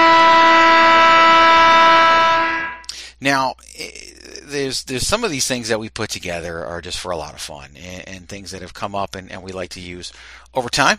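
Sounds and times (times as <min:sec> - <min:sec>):
game show buzzer sound effect: 0:00.0 - 0:02.8
speech: 0:03.2 - 0:10.9.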